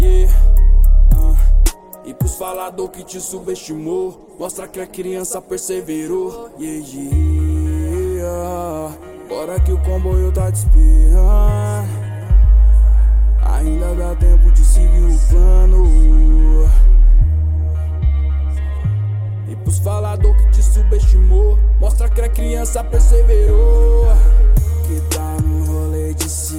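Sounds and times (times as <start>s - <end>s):
deep bass: 0.0s - 1.7s, 7.2s - 8.5s, 9.6s - 26.5s.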